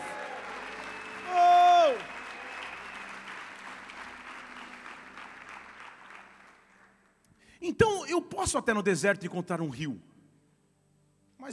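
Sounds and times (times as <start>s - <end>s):
audience applauding: 0.0s - 7.2s
speech: 7.7s - 10.1s.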